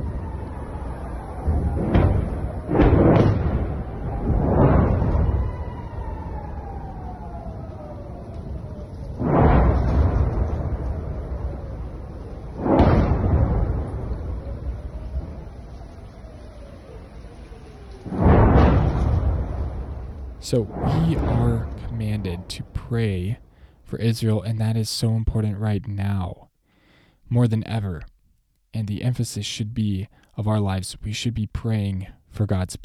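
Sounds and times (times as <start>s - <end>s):
rocket explosions: 0.0s - 23.5s
air raid sirens in Israel: 0.0s - 23.8s
speech: 20.5s - 26.5s, 27.3s - 28.1s, 28.7s - 32.8s.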